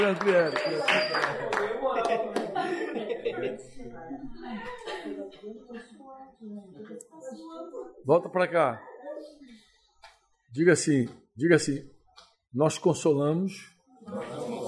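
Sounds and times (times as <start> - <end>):
speech: 0.0 - 2.4, 3.4 - 9.5, 10.5 - 11.9, 12.5 - 14.6
audience clapping: 0.0 - 2.8
laughter: 0.0 - 5.9, 14.1 - 14.6.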